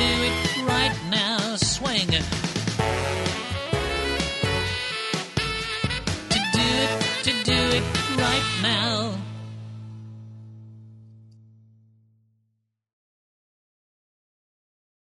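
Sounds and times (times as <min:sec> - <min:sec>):
person singing: 0:00.0 - 0:02.5, 0:06.3 - 0:09.4
mainstream square dance music: 0:00.0 - 0:09.8.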